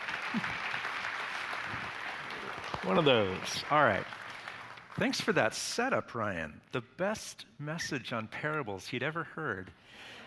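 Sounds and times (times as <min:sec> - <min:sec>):
crowd applause: 0:00.0 - 0:05.2
speech: 0:02.9 - 0:04.2, 0:05.0 - 0:10.2.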